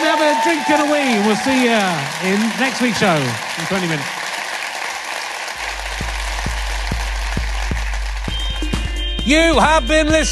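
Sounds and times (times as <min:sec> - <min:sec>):
large audience applause: 0:00.0 - 0:08.9
speech: 0:00.5 - 0:04.2, 0:09.3 - 0:10.3
steady thumping low beat: 0:05.7 - 0:10.3.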